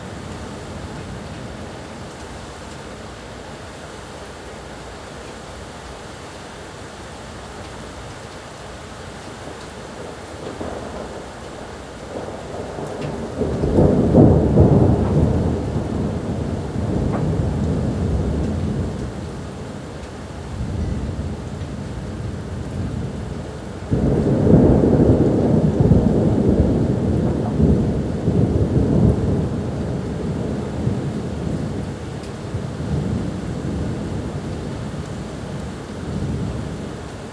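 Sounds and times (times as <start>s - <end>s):
thunder: 10.0s - 19.6s, 20.5s - 36.9s.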